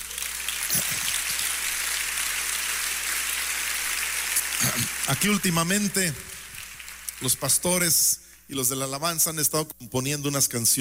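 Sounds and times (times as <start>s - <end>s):
audience applause: 0.0s - 8.0s
speech: 4.7s - 6.4s, 7.2s - 10.7s.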